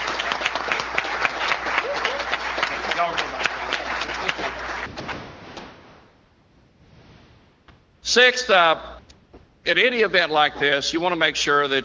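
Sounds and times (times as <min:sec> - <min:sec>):
audience applause: 0:00.0 - 0:05.0
speech: 0:08.1 - 0:08.9, 0:09.6 - 0:11.8.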